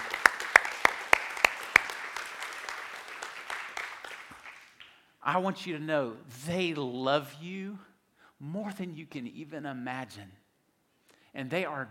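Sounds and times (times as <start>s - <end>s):
audience applauding the staff: 0.0s - 5.0s
speech: 5.2s - 10.4s, 11.4s - 11.8s.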